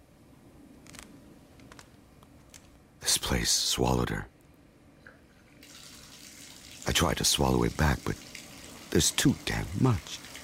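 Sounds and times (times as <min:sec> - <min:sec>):
speech: 0:03.1 - 0:04.3, 0:06.9 - 0:10.3
bath tap running, water filling tub: 0:05.5 - 0:10.4.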